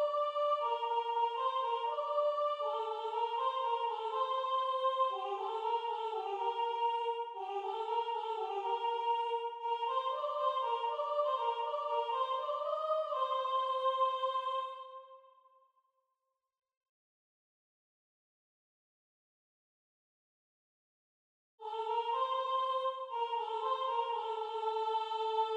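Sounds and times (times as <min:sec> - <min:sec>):
soprano singing: 0:00.0 - 0:15.0, 0:21.6 - 0:25.5.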